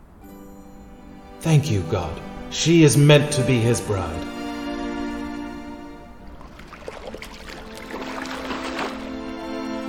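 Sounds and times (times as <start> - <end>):
speech: 1.4 - 4.4
water being poured for camels: 6.1 - 9.7.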